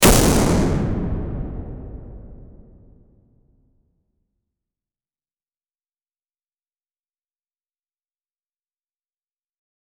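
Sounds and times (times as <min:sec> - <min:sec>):
satisfying shooter gunshots: 0:00.0 - 0:03.0.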